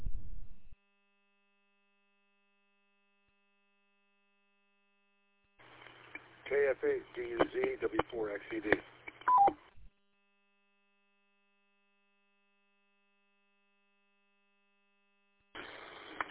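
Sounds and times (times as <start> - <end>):
speech: 6.7 - 9.6
radio roger beep tone: 9.3 - 9.5.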